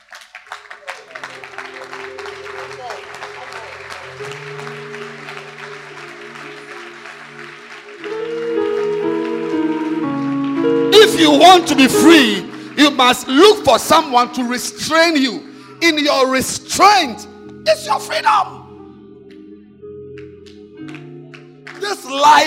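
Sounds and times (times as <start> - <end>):
audience clapping hands: 0.0 - 14.4, 20.2 - 22.4
speech: 11.1 - 18.6.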